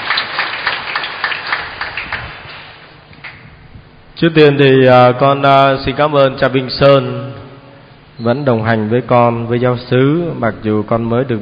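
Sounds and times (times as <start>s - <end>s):
audience applauding: 0.0s - 3.4s
speech: 4.2s - 7.3s, 8.2s - 11.4s.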